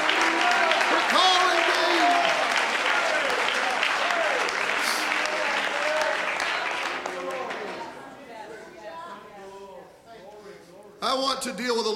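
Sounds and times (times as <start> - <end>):
crowd clapping: 0.0 - 8.1.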